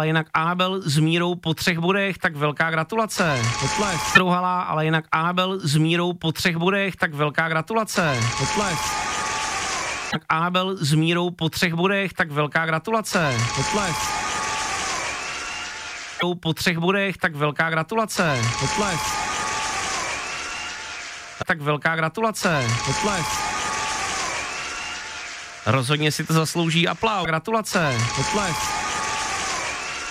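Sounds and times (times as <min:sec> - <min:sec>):
speech: 0:00.0 - 0:09.2, 0:10.1 - 0:14.2, 0:16.2 - 0:19.2, 0:21.4 - 0:23.5, 0:25.6 - 0:28.8
audience applause: 0:08.2 - 0:10.1, 0:13.4 - 0:16.2, 0:18.4 - 0:21.4, 0:22.5 - 0:30.0.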